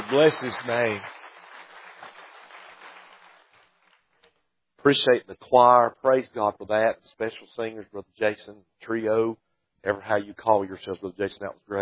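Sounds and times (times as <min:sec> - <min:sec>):
audience clapping: 0:00.0 - 0:04.2
speech: 0:00.1 - 0:01.2, 0:04.8 - 0:11.8.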